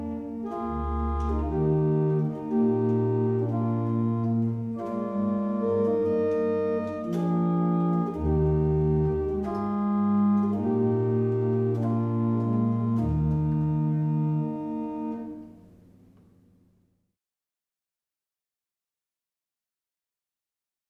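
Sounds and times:
barrel organs playing in Manchester: 0.0s - 15.8s.

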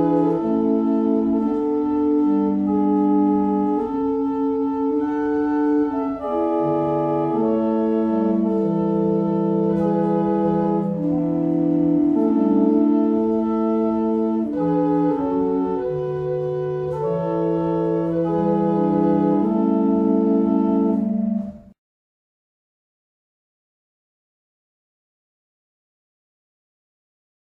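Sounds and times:
barrel organs playing in Abingdon: 0.0s - 21.6s.

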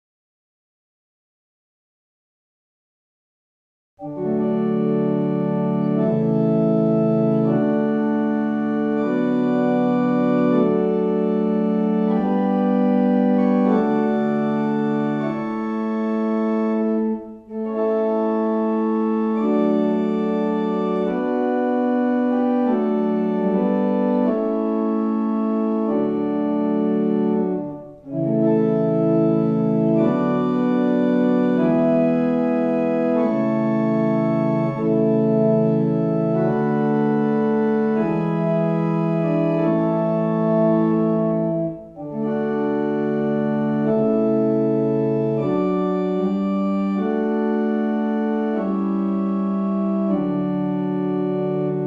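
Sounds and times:
barrel organ: 4.0s - 51.8s.

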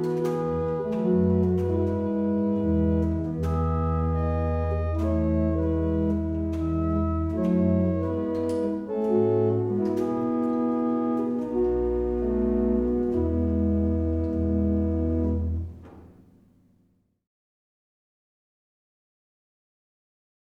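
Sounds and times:
barrel organ playing: 0.0s - 15.8s.

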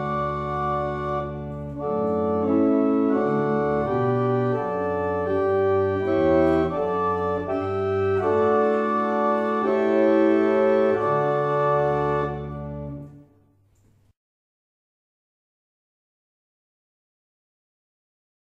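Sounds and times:
barrel organs: 0.0s - 13.3s.

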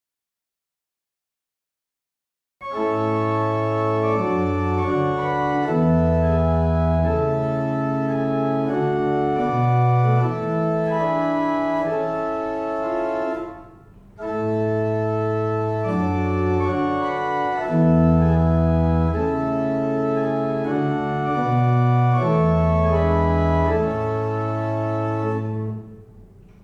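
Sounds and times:
barrel organs playing a single chant: 2.6s - 26.1s.

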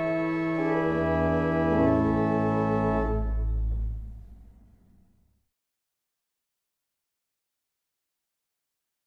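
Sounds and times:
barrel organs in Helmsley: 0.0s - 4.2s.

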